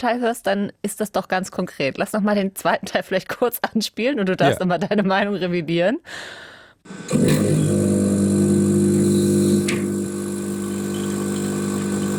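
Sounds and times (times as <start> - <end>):
speech: 0.0 - 8.2
coffee machine running in a lab with mechanical hum: 6.9 - 12.1.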